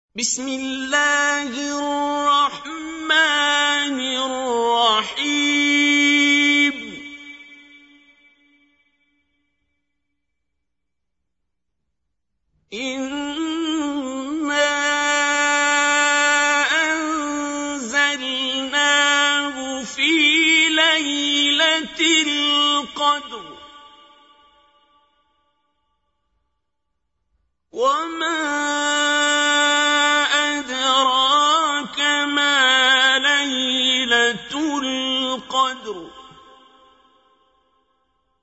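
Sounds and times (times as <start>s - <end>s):
qari reciting the Quran: 0.0s - 8.7s, 12.6s - 26.0s, 27.7s - 37.9s.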